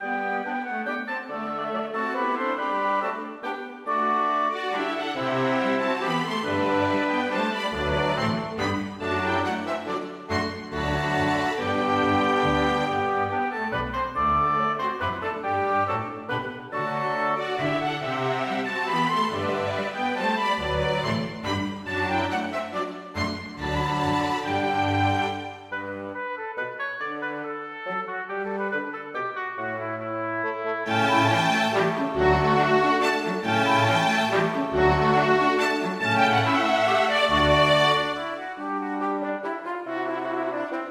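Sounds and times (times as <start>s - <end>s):
chamber orchestra minuet: 0.0s - 40.8s.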